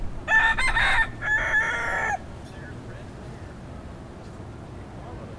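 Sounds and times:
rooster crowing: 0.2 - 2.3.

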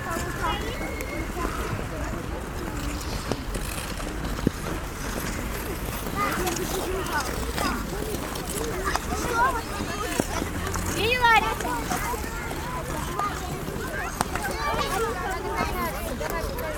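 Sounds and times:
skating rink ambience: 0.0 - 16.7.

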